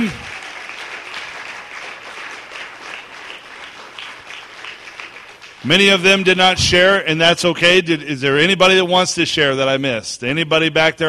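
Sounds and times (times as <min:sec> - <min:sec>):
audience clapping: 0:00.0 - 0:06.4
speech: 0:05.6 - 0:11.0.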